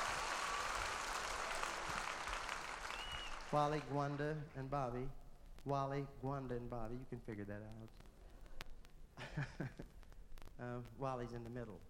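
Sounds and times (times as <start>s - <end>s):
audience applause for the vocal group: 0.0s - 4.4s
speech: 3.5s - 8.0s, 9.2s - 10.0s, 10.6s - 11.8s.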